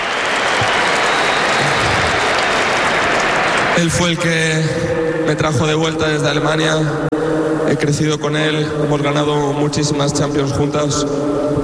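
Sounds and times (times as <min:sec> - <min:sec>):
large crowd applauding: 0:00.0 - 0:04.8
speech: 0:03.8 - 0:11.6.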